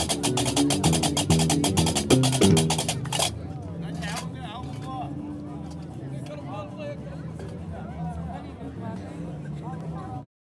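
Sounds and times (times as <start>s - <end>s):
street musicians playing in Jemaa el-Fnaa, Marrakech: 0.0s - 4.3s.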